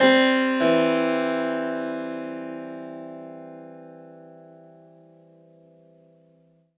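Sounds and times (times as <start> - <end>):
harpsichord: 0.0 - 3.5.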